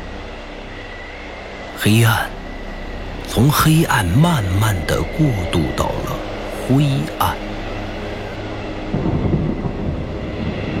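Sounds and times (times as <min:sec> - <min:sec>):
speech: 0:01.8 - 0:02.4, 0:03.3 - 0:06.0, 0:06.7 - 0:07.5
rolling thunder: 0:08.8 - 0:10.7.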